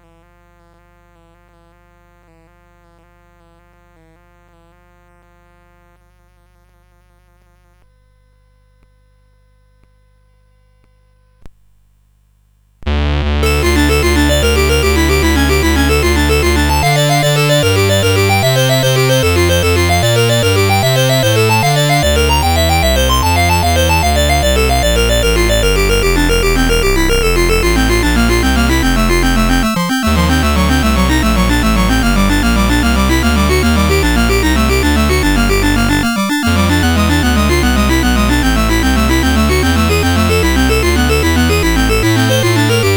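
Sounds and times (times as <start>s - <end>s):
prelude in D major on CSG8580 sound chip: 12.9s - 42.9s.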